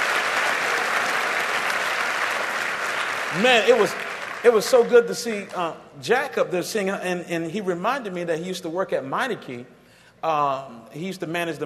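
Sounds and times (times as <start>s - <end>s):
audience clapping hands: 0.0s - 5.8s
speech: 3.3s - 11.6s.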